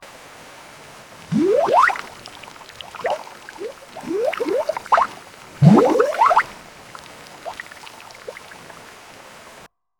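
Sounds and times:
water: 0.0s - 9.7s.

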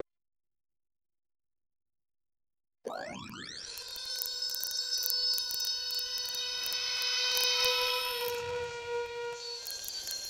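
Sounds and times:
futuristic transformation sound: 2.9s - 10.2s.

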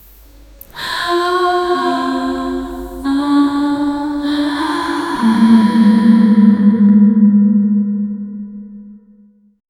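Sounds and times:
chillingly dark haunting music: 0.1s - 9.3s.

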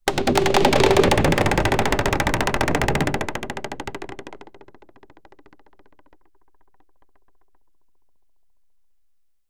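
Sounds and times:
wooden drop sound effect: 0.1s - 4.9s.

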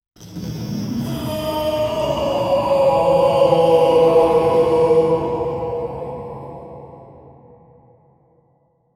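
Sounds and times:
evil grimace vocal: 1.0s - 7.5s.

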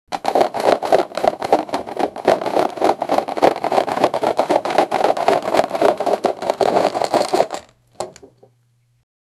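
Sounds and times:
box: 0.1s - 8.5s.

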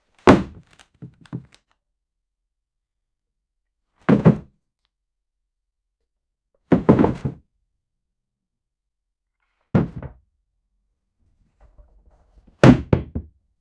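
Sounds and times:
stack of books falling: 0.2s - 1.6s, 6.8s - 7.4s.

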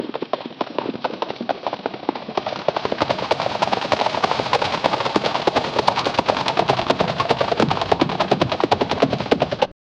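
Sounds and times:
army horses marching in formation: 0.0s - 9.7s.

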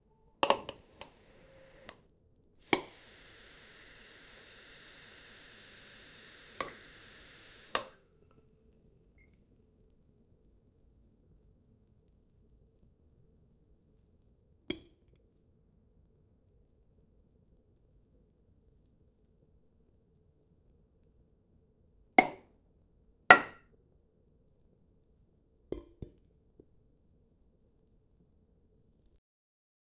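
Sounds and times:
person cooking nearby: 0.4s - 2.0s, 2.6s - 8.0s, 23.3s - 23.6s.

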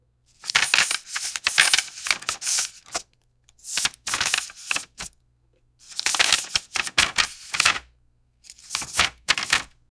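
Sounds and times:
counting paper money: 0.4s - 3.0s, 3.6s - 5.1s, 5.8s - 7.8s, 8.5s - 9.7s.

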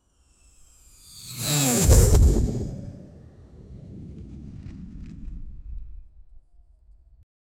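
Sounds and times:
fireball flying by: 1.1s - 6.3s.

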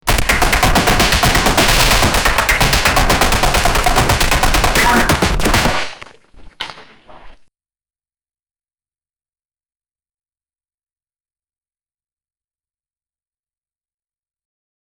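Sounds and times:
massive battle: 0.0s - 6.0s.

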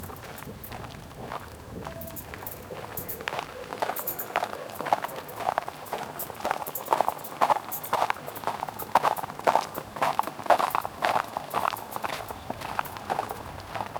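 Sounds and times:
camels walking in the desert: 0.0s - 13.9s.

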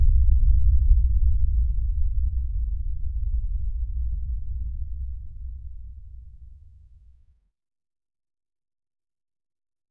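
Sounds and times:
ambient wind: 0.2s - 6.7s.

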